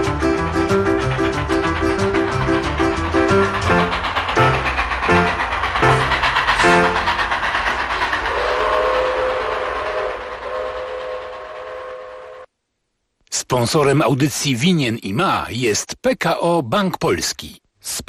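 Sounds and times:
train wheels clickety-clack over rails: 0.0s - 12.5s
speech: 13.6s - 18.0s.

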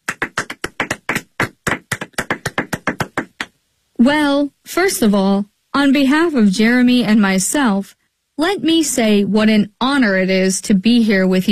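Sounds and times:
audience applause: 0.1s - 3.4s
speech: 4.0s - 11.5s.

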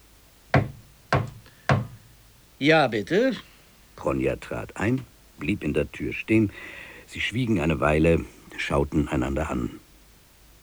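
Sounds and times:
firm knocking on a wooden door: 0.5s - 2.2s
speech: 2.6s - 9.8s.

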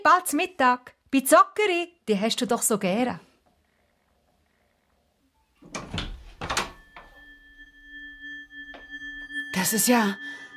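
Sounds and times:
speech: 0.0s - 3.3s, 9.6s - 10.4s
door opening with wooden clunks and rattles: 5.6s - 7.1s
thin whining tone: 6.8s - 10.5s.

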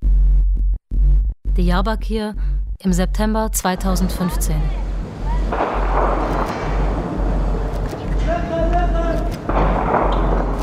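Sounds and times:
low rumble: 0.0s - 10.6s
speech: 1.6s - 4.9s
voices: 3.7s - 9.6s
gunshots echoing over a city wall in Diyarbakir: 5.5s - 8.0s, 9.2s - 10.6s.

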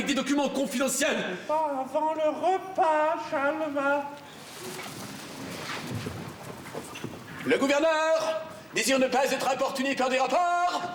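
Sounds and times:
steady hiss of noise: 0.0s - 10.9s
speech: 0.1s - 5.0s, 7.4s - 10.9s
horse hooves of a messenger arriving on horseback: 4.4s - 7.5s.

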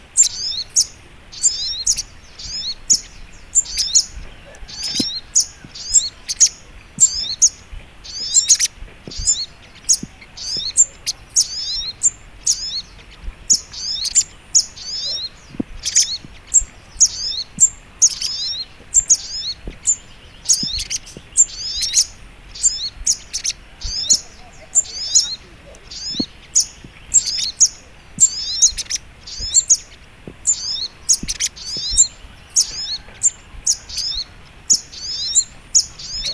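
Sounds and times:
Little Spiderhunter song: 0.0s - 36.3s
soft hiss: 0.0s - 36.3s.

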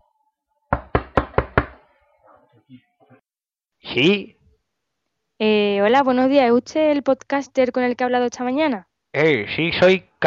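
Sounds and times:
knocking on a door: 0.7s - 1.8s
speech: 2.6s - 3.3s, 3.9s - 4.4s, 5.4s - 10.2s.

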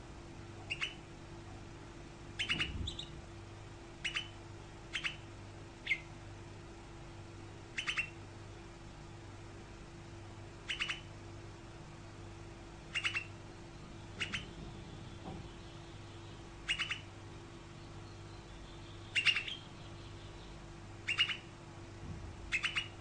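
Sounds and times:
canary giving sharp chirps: 0.6s - 1.6s, 2.3s - 3.2s, 4.0s - 6.3s, 7.7s - 8.3s, 10.4s - 12.2s, 12.8s - 21.7s, 22.5s - 23.0s.

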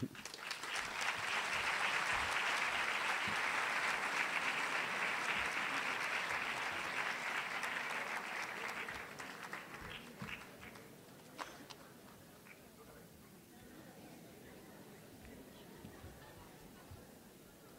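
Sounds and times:
audience applause: 0.0s - 11.7s.

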